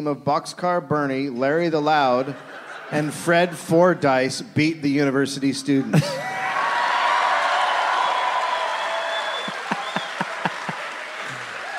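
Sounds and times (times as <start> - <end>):
speech: 0.0 - 6.4
laughter: 2.1 - 3.8, 5.8 - 6.8, 9.2 - 11.7
audience applause: 6.2 - 11.7.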